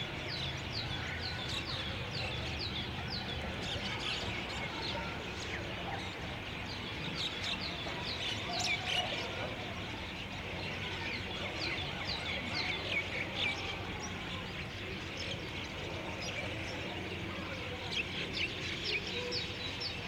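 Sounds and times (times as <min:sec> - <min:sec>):
birds: 0:00.0 - 0:20.0
urban spring ambience: 0:00.0 - 0:20.0.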